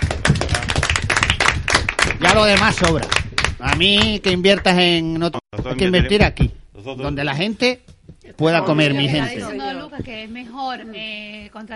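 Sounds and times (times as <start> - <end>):
audience applause: 0.0 - 4.2
speech: 2.4 - 11.7.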